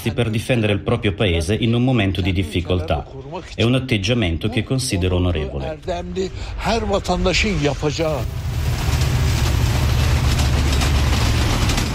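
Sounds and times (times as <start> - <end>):
speech: 0.0 - 8.9
trains rumbling in a railway station: 5.7 - 11.9.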